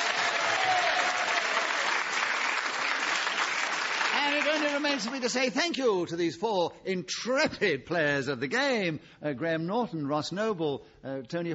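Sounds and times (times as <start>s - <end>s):
studio audience applause: 0.0s - 5.6s
speech: 4.5s - 11.5s.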